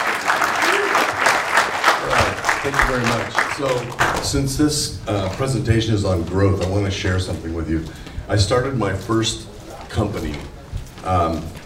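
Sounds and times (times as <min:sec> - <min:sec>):
audience applause: 0:00.0 - 0:04.7
speech: 0:02.7 - 0:11.6.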